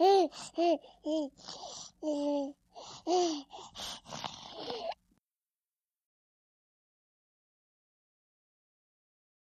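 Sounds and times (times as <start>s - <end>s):
twelve-month-old baby girl playing happily: 0.0s - 5.0s.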